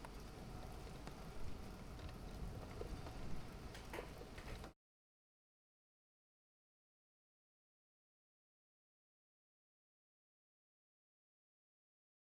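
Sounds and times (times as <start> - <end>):
rain outside a window: 0.0 - 4.8.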